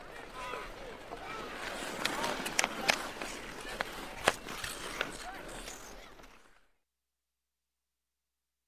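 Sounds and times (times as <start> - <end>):
outdoor hockey ambience: 0.0 - 6.8.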